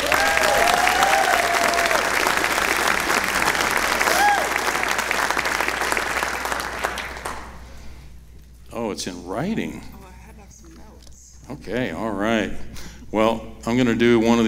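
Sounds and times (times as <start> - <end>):
audience applause welcoming a speaker: 0.0 - 7.6
speech: 9.0 - 10.0, 11.5 - 14.4.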